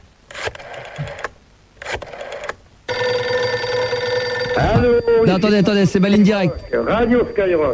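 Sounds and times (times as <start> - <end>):
phone number being dialed: 0.3 - 5.0
telephone ringing tone: 2.9 - 7.7
speech: 5.0 - 7.7.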